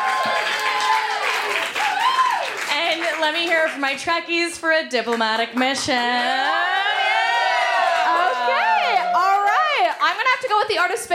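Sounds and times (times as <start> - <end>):
whoops and cheers: 0.0 - 2.6, 6.4 - 9.9
crowd applause: 0.0 - 3.8, 6.2 - 10.5
speech: 3.2 - 6.8, 10.1 - 11.1.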